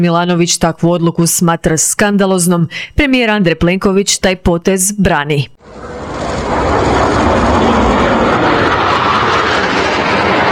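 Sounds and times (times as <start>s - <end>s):
speech: 0.0s - 6.9s
two French Rafale multirole fighter jets flying over Zagreb: 5.6s - 10.5s.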